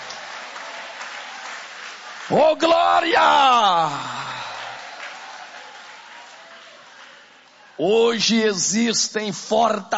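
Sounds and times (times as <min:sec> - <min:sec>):
audience applauding: 0:00.0 - 0:07.8
speech: 0:02.3 - 0:04.2, 0:07.8 - 0:09.9.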